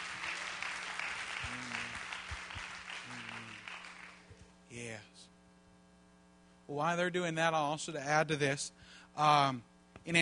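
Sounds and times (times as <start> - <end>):
audience clapping: 0.0 - 4.4
speech: 4.8 - 5.3, 6.7 - 10.2.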